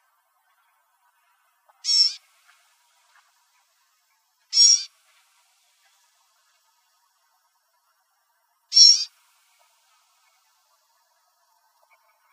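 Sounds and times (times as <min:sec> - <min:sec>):
gnatcatchers calling: 0:01.8 - 0:02.3, 0:04.5 - 0:05.0, 0:08.7 - 0:09.2.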